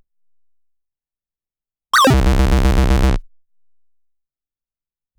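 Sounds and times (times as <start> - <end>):
sound effects: 2.0 - 3.2.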